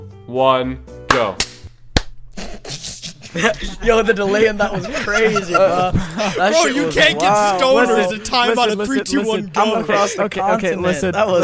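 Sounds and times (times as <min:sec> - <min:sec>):
speech: 0:00.0 - 0:01.5, 0:03.3 - 0:11.4
hand clap over delayed call: 0:01.1 - 0:02.2
laughter: 0:02.4 - 0:11.4.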